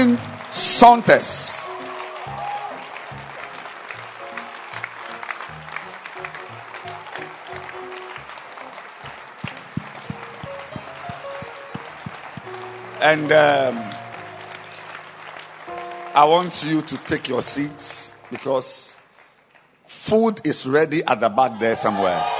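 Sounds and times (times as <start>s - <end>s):
speech: 0.0s - 1.5s, 13.0s - 13.9s, 16.2s - 18.9s, 20.0s - 22.3s
audience clapping for a church choir: 0.0s - 20.4s.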